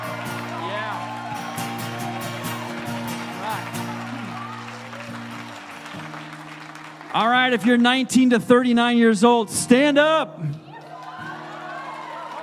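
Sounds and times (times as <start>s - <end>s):
audience clapping: 0.0s - 8.8s, 10.4s - 12.4s
speech: 7.2s - 10.6s.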